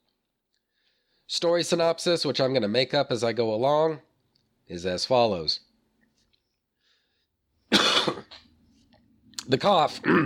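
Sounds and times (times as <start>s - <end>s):
speech: 1.3s - 4.1s, 4.7s - 5.7s, 9.5s - 10.2s
person coughing: 7.7s - 8.4s, 10.0s - 10.2s.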